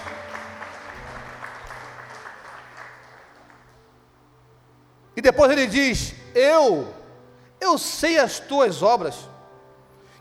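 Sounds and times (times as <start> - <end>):
audience applauding: 0.0 - 3.8
speech: 5.2 - 7.0, 7.6 - 9.3.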